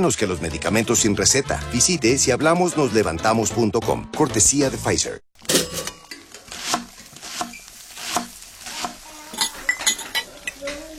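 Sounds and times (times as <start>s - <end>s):
speech: 0.0s - 5.5s
kitchen dishes and cutlery clinking: 5.4s - 6.6s, 9.3s - 10.9s.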